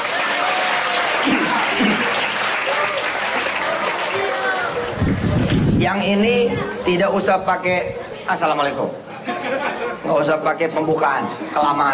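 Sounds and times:
santri students applauding at an Islamic religious lecture: 0:00.0 - 0:05.6
speech: 0:05.9 - 0:11.9
laughter: 0:09.1 - 0:10.2.

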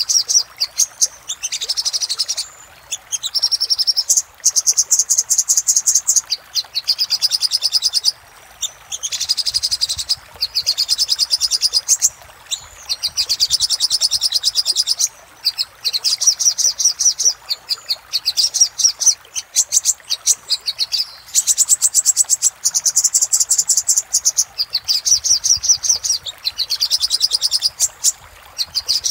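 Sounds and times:
little spiderhunter song: 0:00.0 - 0:29.0.

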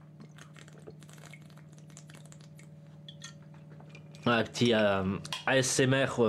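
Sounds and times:
person sipping a little water: 0:00.1 - 0:03.1
speech: 0:04.2 - 0:06.2.

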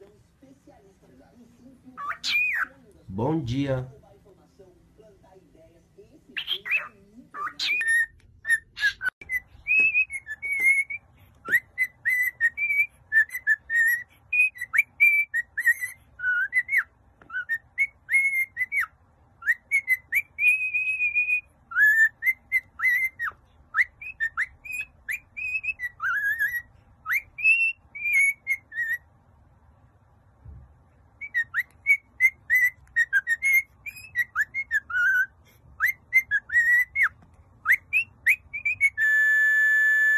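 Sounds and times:
cockatiel whistling: 0:02.0 - 0:02.7, 0:06.4 - 0:29.0, 0:31.2 - 0:40.1
speech: 0:03.1 - 0:04.0.

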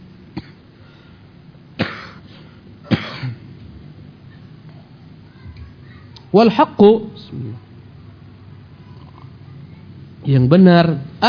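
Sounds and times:
child coughing: 0:01.8 - 0:02.2, 0:02.8 - 0:03.4
speech: 0:06.3 - 0:07.4, 0:10.3 - 0:11.2.

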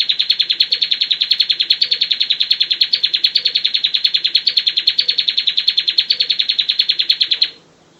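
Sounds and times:
prinia trilling: 0:00.0 - 0:07.9.

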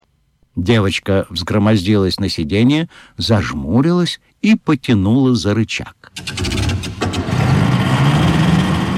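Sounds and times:
speech: 0:00.6 - 0:06.6
snow scooter engine sputtering and roaring: 0:06.4 - 0:08.9.

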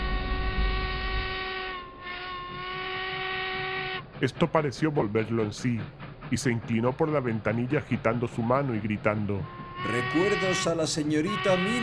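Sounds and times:
train whistle: 0:00.0 - 0:04.1, 0:09.4 - 0:11.8
train pulling away: 0:00.0 - 0:11.8
speech: 0:04.2 - 0:11.8.

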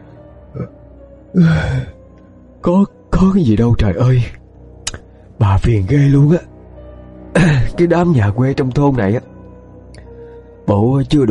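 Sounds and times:
speech: 0:00.5 - 0:02.0, 0:02.6 - 0:04.4, 0:05.4 - 0:06.5, 0:07.4 - 0:09.3, 0:10.7 - 0:11.2
man yawning with a low voiced groan: 0:00.6 - 0:02.0.

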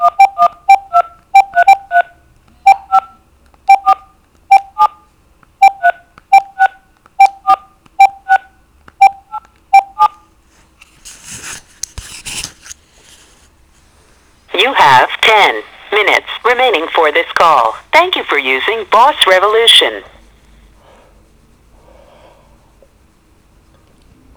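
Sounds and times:
telephone keypad tones dialing a number on a prepaid calling-card line: 0:00.0 - 0:05.0, 0:05.6 - 0:10.2, 0:14.6 - 0:20.2
speech: 0:18.4 - 0:20.2.

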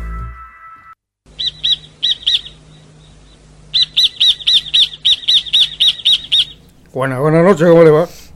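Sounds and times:
small bird singing: 0:01.3 - 0:06.8
speech: 0:07.0 - 0:08.3.

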